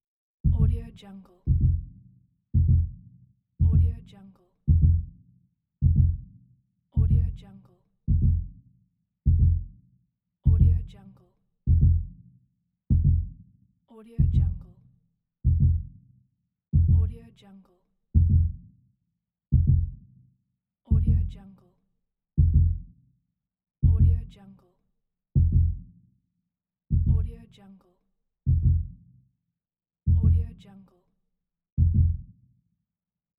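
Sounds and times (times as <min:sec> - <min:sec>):
heartbeat slowing down: 0:00.4 - 0:00.8, 0:01.5 - 0:02.0, 0:02.6 - 0:03.0, 0:03.6 - 0:04.0, 0:04.7 - 0:05.2, 0:05.8 - 0:06.3, 0:07.0 - 0:07.4, 0:08.1 - 0:08.6, 0:09.3 - 0:09.8, 0:10.5 - 0:10.9, 0:11.7 - 0:12.2, 0:12.9 - 0:13.4, 0:14.2 - 0:14.7, 0:15.4 - 0:16.0, 0:16.8 - 0:17.2, 0:18.2 - 0:18.6, 0:19.5 - 0:20.0, 0:20.9 - 0:21.4, 0:22.4 - 0:22.9, 0:23.8 - 0:24.2, 0:25.4 - 0:25.9, 0:26.9 - 0:27.3, 0:28.5 - 0:29.0, 0:30.1 - 0:30.5, 0:31.8 - 0:32.3.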